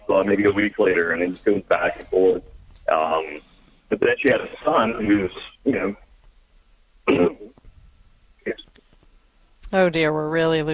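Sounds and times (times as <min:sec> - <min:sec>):
speech: 0:00.2 - 0:06.0, 0:07.1 - 0:07.4, 0:09.7 - 0:10.7
person clearing throat: 0:07.1 - 0:07.5.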